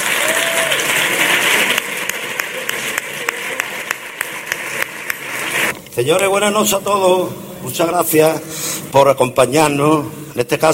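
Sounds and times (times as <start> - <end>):
applause: 0.0 - 5.7
speech: 6.0 - 10.7.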